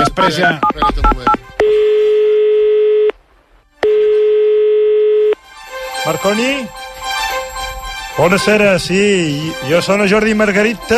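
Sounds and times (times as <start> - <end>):
speech: 0.2 - 1.4, 6.0 - 6.8, 8.2 - 10.9
telephone dial beeps while calling a guest: 0.6 - 3.1, 3.8 - 5.4
telephone ringing tones: 0.6 - 3.2, 3.8 - 5.4.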